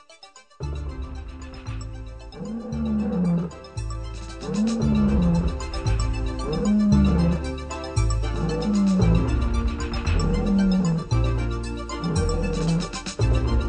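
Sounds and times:
lions roaring: 0:02.3 - 0:13.2.

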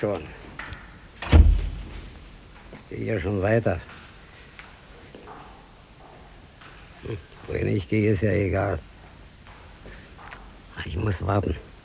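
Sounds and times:
speech: 0:00.0 - 0:00.4, 0:02.9 - 0:04.0, 0:07.0 - 0:08.9, 0:10.8 - 0:11.7
door opening or closing: 0:01.2 - 0:02.4.

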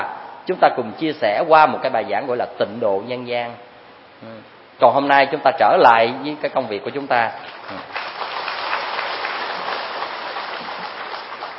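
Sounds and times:
speech: 0:00.5 - 0:08.0
Buddhist lecture audience applauding a monk: 0:07.6 - 0:11.5.

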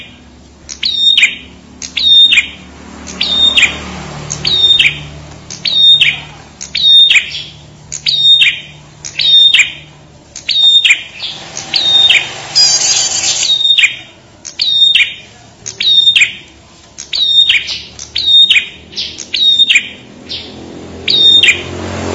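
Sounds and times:
bird song with high clipped chirps: 0:00.0 - 0:21.9.

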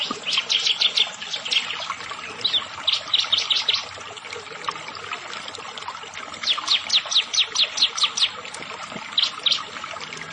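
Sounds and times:
bar-winged prinia song of high chips: 0:00.0 - 0:03.9, 0:06.4 - 0:08.4, 0:09.2 - 0:09.8.

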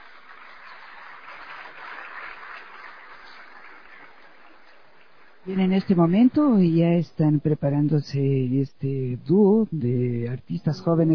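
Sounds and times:
audience applause at a solemn anniversary session: 0:00.0 - 0:05.4
speech: 0:05.4 - 0:11.1.

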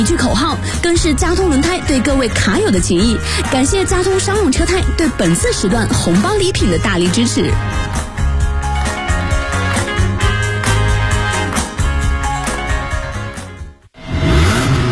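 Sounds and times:
speech: 0:00.0 - 0:08.0
driving beat-heavy music track: 0:00.0 - 0:14.7
car engine revving: 0:13.9 - 0:14.8.

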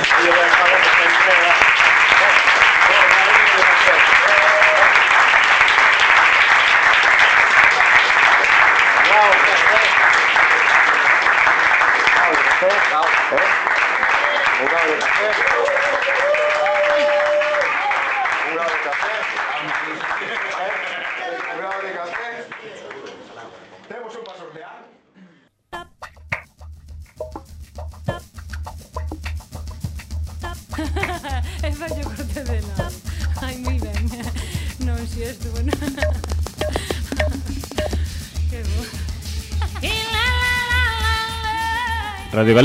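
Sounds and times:
audience applause: 0:00.0 - 0:23.5, 0:30.7 - 0:34.8, 0:35.6 - 0:42.6
laughter: 0:19.4 - 0:21.4, 0:30.4 - 0:40.7.

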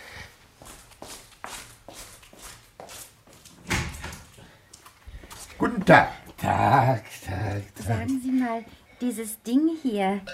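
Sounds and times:
footsteps: 0:00.0 - 0:08.9
door being opened: 0:03.6 - 0:04.4
speech: 0:05.6 - 0:10.3.

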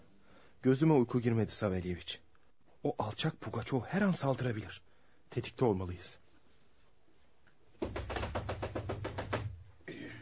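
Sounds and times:
speech: 0:00.6 - 0:02.2, 0:02.8 - 0:06.2
knocking on a door: 0:07.8 - 0:09.7.

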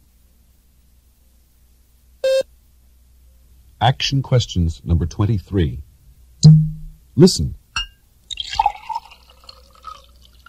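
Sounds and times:
speech: 0:03.8 - 0:07.6
Beaujolais wine pouring into a glass: 0:08.3 - 0:10.4.

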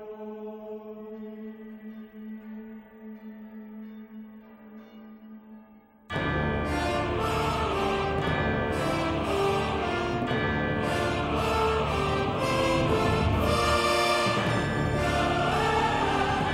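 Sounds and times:
orchestral overture for an animated film: 0:04.4 - 0:16.5
struck church bell tones: 0:06.1 - 0:16.5.

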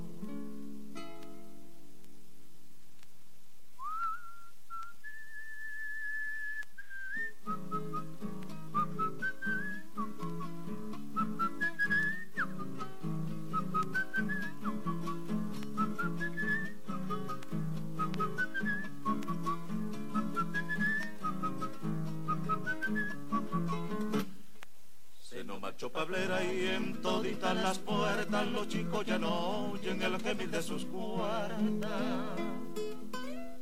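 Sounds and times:
person whistling a melody: 0:03.8 - 0:12.9, 0:13.5 - 0:23.8
steady strummed string accompaniment: 0:07.5 - 0:24.4, 0:26.0 - 0:33.5
speech: 0:26.4 - 0:32.6.

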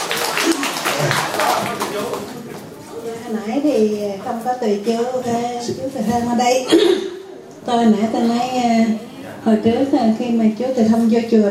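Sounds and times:
audience clapping at a retreat: 0:00.0 - 0:02.8
speech: 0:01.0 - 0:01.3, 0:03.3 - 0:11.5.

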